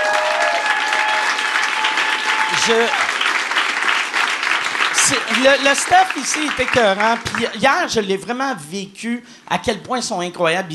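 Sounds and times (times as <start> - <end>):
person whooping or cheering: 0.0 - 3.1
audience applause: 0.0 - 7.6
speech: 2.6 - 3.0, 5.1 - 10.7.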